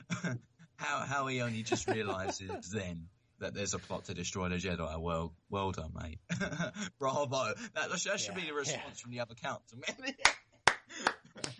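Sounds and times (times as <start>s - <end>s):
laughter: 0.0s - 0.4s, 1.2s - 2.9s, 6.3s - 8.8s
speech: 0.2s - 10.4s
slow golf clap: 10.3s - 11.5s.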